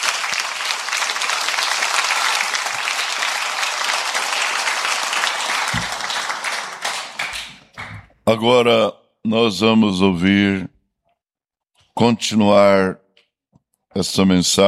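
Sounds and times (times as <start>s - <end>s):
audience applauding: 0.0s - 8.2s
speech: 8.3s - 10.7s, 12.0s - 13.0s, 14.0s - 14.6s.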